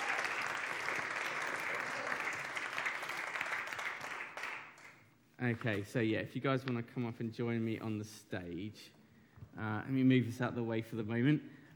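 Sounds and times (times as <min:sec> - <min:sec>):
applause: 0:00.0 - 0:05.2
speech: 0:05.4 - 0:09.0, 0:09.6 - 0:11.6.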